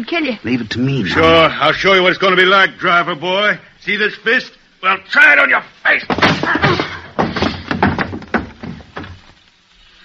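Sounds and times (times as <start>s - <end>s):
speech: 0.0s - 6.9s
chair hitting a man: 6.1s - 9.2s.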